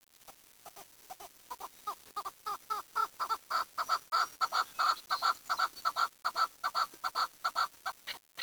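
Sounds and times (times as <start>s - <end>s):
bird chattering calls: 0.7s - 8.4s.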